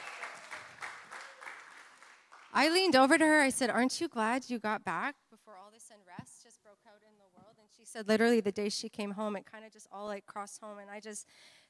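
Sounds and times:
audience cheering and applauding: 0:00.0 - 0:02.6
speech: 0:02.5 - 0:11.6.

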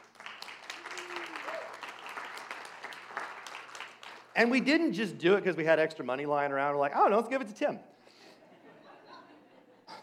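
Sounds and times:
audience clapping: 0:00.0 - 0:04.7
speech: 0:04.4 - 0:07.9
laughter: 0:08.4 - 0:10.0.

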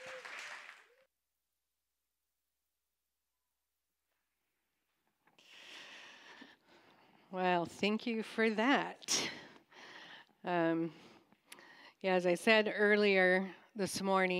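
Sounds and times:
audience applause: 0:00.0 - 0:01.0
speech: 0:07.3 - 0:09.2, 0:10.4 - 0:11.1, 0:12.0 - 0:14.3.

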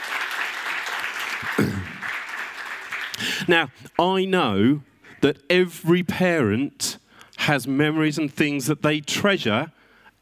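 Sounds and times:
audience applause: 0:00.0 - 0:03.5
speech: 0:03.5 - 0:10.2.

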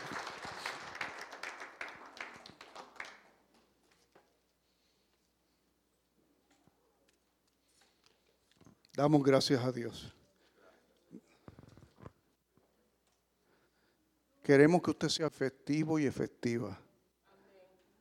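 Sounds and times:
audience applauding: 0:00.0 - 0:03.5
speech: 0:09.0 - 0:10.2, 0:14.5 - 0:16.8.

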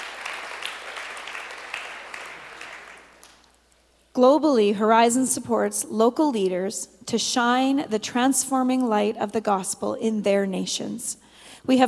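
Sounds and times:
audience clapping: 0:00.0 - 0:03.6
speech: 0:04.2 - 0:11.8.

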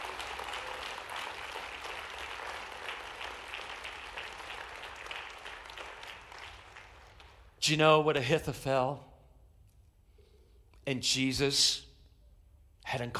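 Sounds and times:
applause from a large crowd: 0:00.0 - 0:07.4
speech: 0:07.7 - 0:09.1, 0:10.9 - 0:11.9, 0:12.9 - 0:13.1.

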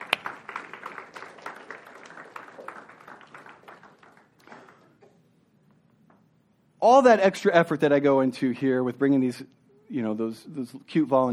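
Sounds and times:
audience applause: 0:00.0 - 0:05.0
speech: 0:06.8 - 0:11.3.

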